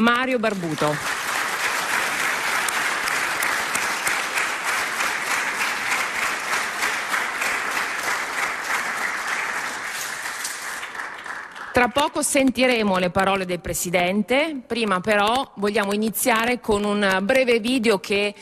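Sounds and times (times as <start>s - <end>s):
speech: 0.0s - 1.2s, 11.8s - 18.4s
audience applause: 0.6s - 11.8s.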